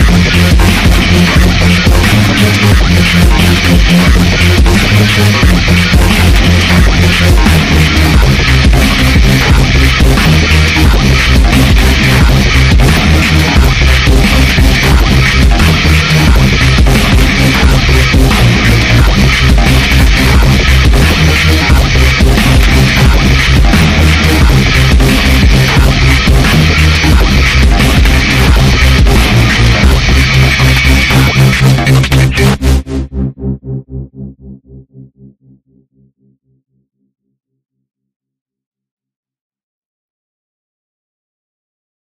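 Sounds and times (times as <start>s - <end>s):
modern digital dubstep mix: 0.0s - 34.4s.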